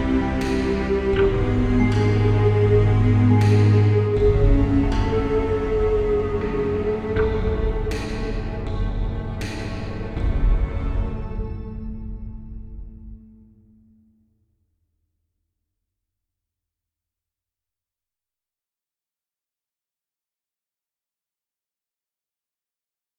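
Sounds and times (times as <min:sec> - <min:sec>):
dark synth music: 0:00.0 - 0:14.2.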